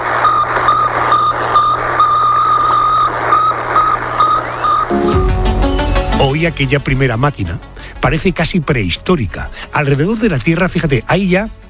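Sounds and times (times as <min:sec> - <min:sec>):
static hiss: 0:00.0 - 0:05.1
satellite radio signal beeping: 0:00.0 - 0:06.1
speech: 0:06.4 - 0:11.6.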